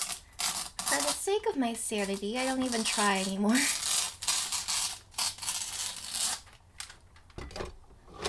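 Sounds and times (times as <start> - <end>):
scissors snipping through packaging: 0.0 - 6.6
speech: 1.2 - 3.8.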